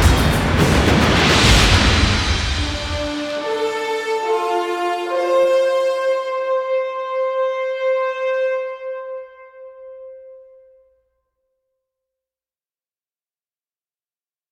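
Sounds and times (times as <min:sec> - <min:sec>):
game end victory music: 0:00.0 - 0:09.4.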